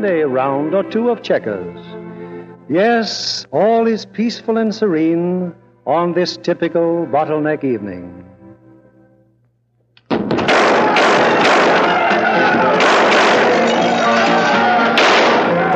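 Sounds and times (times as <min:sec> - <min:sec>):
speech: 0:00.0 - 0:02.0, 0:02.7 - 0:08.3
crashing, banging and thumping of a tavern brawl in a radio drama: 0:10.2 - 0:15.6.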